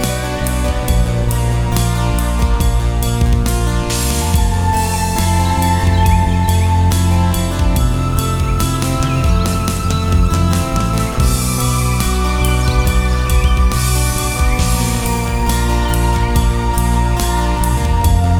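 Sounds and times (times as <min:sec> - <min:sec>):
psychedelic 1960s-style synthesizer music demo: 0:00.0 - 0:18.3.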